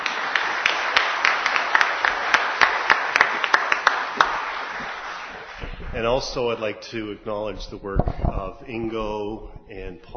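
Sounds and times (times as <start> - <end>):
audience applause for a choir: 0.0 - 6.6
speech: 6.0 - 10.1.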